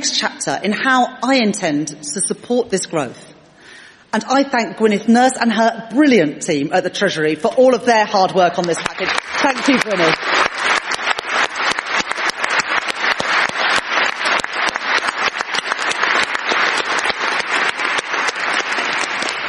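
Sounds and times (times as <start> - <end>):
speech: 0.0 - 3.3, 4.1 - 10.2
audience applause: 8.7 - 19.4.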